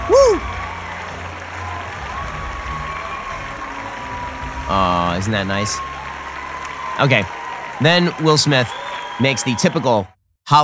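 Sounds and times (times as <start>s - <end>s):
crowd standing ovation applause: 0.0s - 10.2s
speech: 4.7s - 5.9s, 7.0s - 10.6s.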